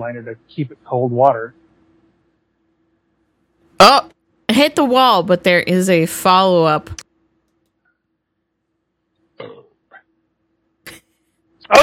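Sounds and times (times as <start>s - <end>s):
speech: 0.0s - 1.6s, 3.8s - 7.0s
burp: 9.4s - 10.0s.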